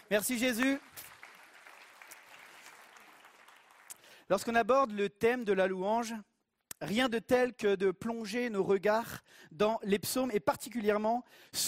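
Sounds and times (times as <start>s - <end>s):
crowd applauding: 0.0s - 4.2s
speech: 0.1s - 1.1s, 4.3s - 11.6s.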